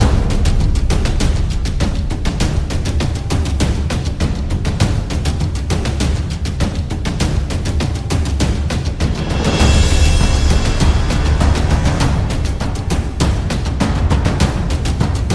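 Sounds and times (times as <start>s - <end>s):
drum: 0.0s - 15.3s.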